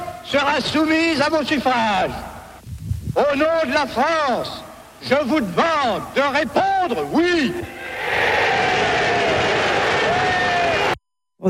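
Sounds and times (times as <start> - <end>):
speech: 0.3 - 2.3, 3.2 - 8.4
large crowd cheering and shouting: 7.6 - 11.0.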